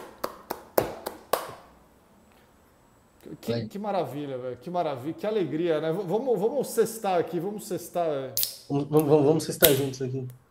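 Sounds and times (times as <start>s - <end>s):
sharp hand claps: 0.0s - 1.7s
speech: 3.3s - 10.4s.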